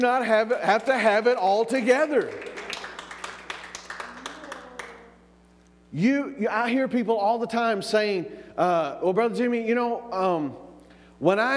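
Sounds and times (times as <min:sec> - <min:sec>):
speech: 0:00.0 - 0:02.5, 0:05.9 - 0:10.6, 0:11.2 - 0:11.5
audience clapping: 0:00.6 - 0:05.2.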